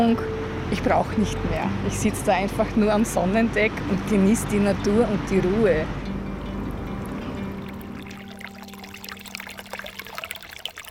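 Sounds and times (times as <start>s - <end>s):
speech: 0.0s - 6.0s
babbling brook trickling: 7.6s - 10.8s.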